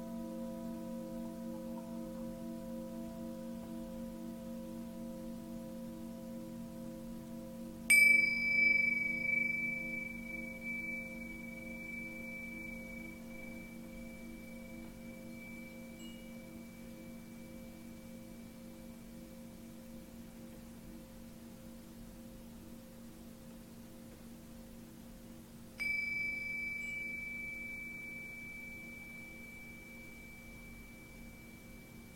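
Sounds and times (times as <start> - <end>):
Tibetan singing bowl struck: 0.0 - 18.2, 25.8 - 32.1
Tibetan singing bowl humming drone: 0.0 - 21.0, 25.8 - 32.1.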